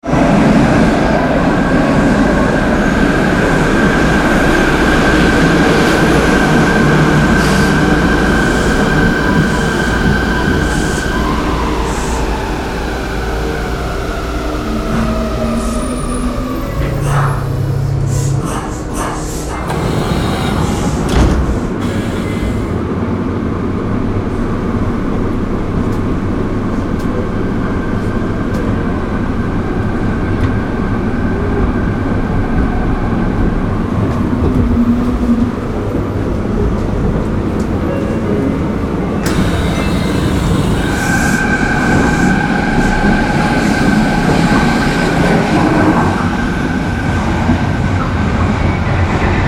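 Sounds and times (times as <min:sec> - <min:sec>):
subway: 0:00.0 - 0:49.4.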